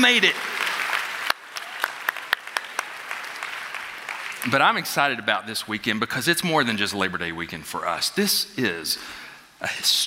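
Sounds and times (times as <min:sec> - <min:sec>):
speech: 0:00.0 - 0:00.6, 0:04.4 - 0:10.0
audience applause: 0:00.0 - 0:04.7.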